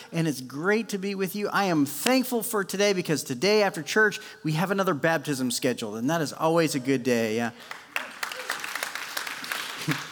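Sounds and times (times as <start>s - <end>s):
speech: 0.1s - 7.8s, 9.8s - 10.0s
church congregation clapping during a service: 7.6s - 10.1s.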